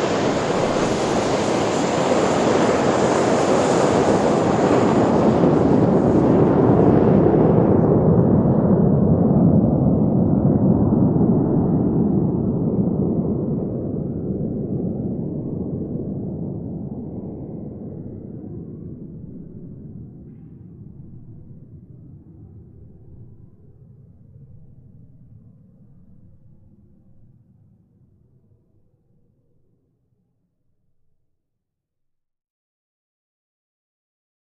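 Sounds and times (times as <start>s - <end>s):
jet taxiing with whining engine and taking off from runway: 0.0s - 23.8s.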